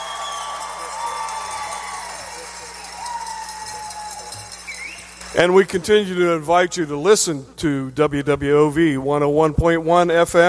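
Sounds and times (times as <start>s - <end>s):
live audience applause: 0.0s - 6.0s
speech: 5.4s - 10.4s.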